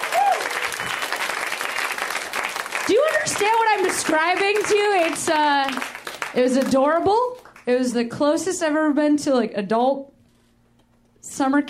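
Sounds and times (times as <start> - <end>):
audience applause: 0.0 - 7.6
speech: 2.9 - 10.1, 11.4 - 11.6.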